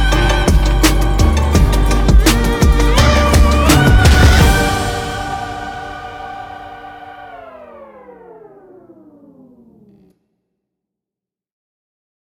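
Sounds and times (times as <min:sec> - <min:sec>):
hip hop music: 0:00.0 - 0:08.8.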